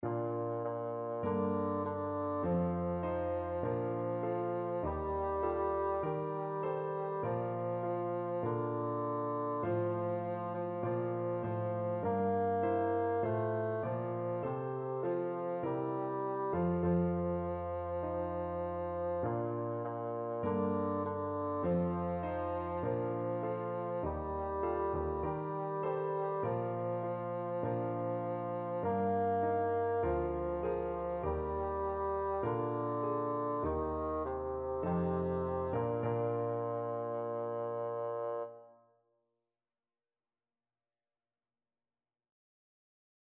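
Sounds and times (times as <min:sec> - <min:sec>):
bassoon playing a hymn: 0:00.0 - 0:38.8.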